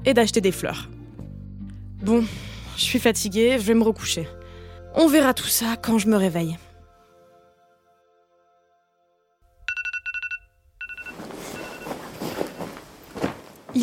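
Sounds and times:
speech: 0:00.0 - 0:01.0, 0:02.0 - 0:06.7
alarm clock beeping: 0:09.7 - 0:12.7
rustling: 0:10.8 - 0:13.8.

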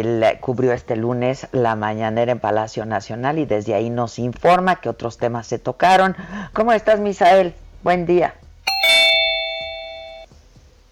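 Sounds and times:
speech: 0:00.0 - 0:09.0
studio signal two-tone chime: 0:08.7 - 0:10.3.

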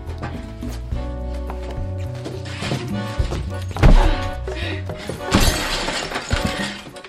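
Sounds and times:
low music: 0:00.0 - 0:07.0
furniture smashing: 0:03.8 - 0:04.4, 0:05.2 - 0:07.0
glass breaking: 0:05.3 - 0:07.0.

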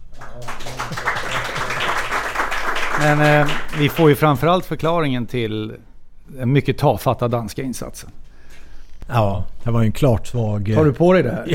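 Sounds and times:
audience applause: 0:00.0 - 0:04.2
speech: 0:03.0 - 0:08.2, 0:09.1 - 0:11.5.

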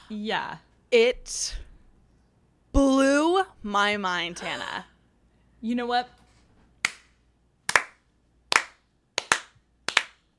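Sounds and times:
speech: 0:00.1 - 0:01.7, 0:02.8 - 0:04.9, 0:05.6 - 0:06.2
hands clapping: 0:06.8 - 0:10.3.

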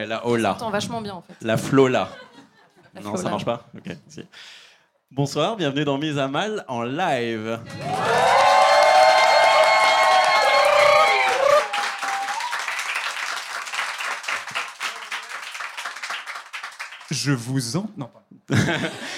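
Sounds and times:
speech: 0:00.0 - 0:02.2, 0:02.9 - 0:08.4, 0:17.1 - 0:19.1
laughter: 0:02.0 - 0:04.3, 0:18.5 - 0:19.1
live show audience cheering with high-pitched shouts: 0:07.6 - 0:16.0
live show audience clapping: 0:07.6 - 0:17.6.

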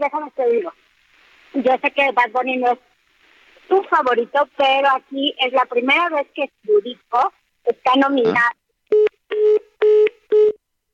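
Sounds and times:
speech: 0:00.0 - 0:00.8, 0:01.6 - 0:02.9, 0:03.7 - 0:08.6
telephone tones as phone call drops: 0:08.9 - 0:10.6.

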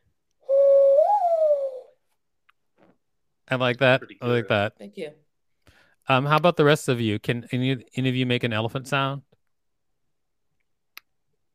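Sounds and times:
person imitating a mourning dove coo: 0:00.5 - 0:01.9
speech: 0:03.5 - 0:05.2, 0:06.1 - 0:09.3.

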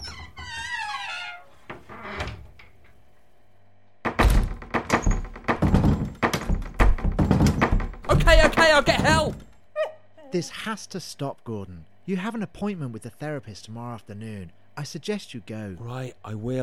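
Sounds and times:
cupboard door being opened slowly: 0:00.0 - 0:02.8, 0:04.1 - 0:09.5
speech: 0:10.3 - 0:16.6.

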